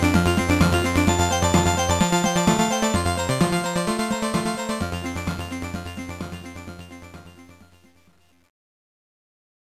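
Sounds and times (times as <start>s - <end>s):
boss battle background music: 0.0s - 6.5s.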